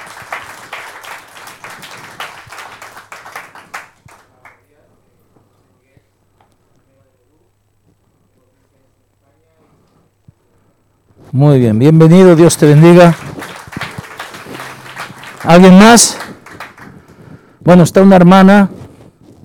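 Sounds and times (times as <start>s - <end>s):
crowd clapping welcoming a visitor: 0.0s - 4.7s, 12.3s - 17.5s
speech: 11.3s - 13.3s, 15.4s - 16.3s, 17.7s - 18.8s.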